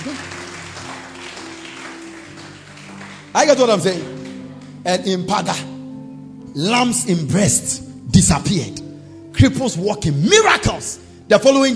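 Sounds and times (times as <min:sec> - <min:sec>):
audience clapping hands: 0:00.0 - 0:04.8
speech: 0:03.4 - 0:04.2, 0:04.8 - 0:05.7, 0:06.6 - 0:08.8, 0:09.4 - 0:11.7.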